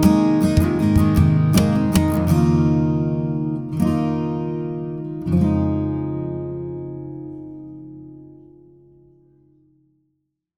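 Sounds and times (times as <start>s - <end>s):
instrumental backing track: 0.0s - 8.3s.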